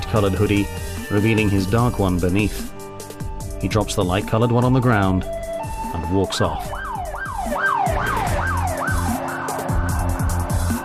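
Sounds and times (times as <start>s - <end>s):
speech: 0.1s - 2.8s, 3.6s - 6.8s
police patrol car sirens wailing: 5.5s - 10.8s.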